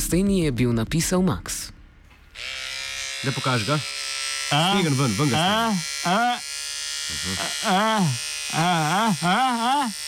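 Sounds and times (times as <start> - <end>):
speech: 0.1 - 1.8, 3.2 - 6.5, 7.1 - 10.0
electric razor buzzing during a shave: 2.3 - 10.0.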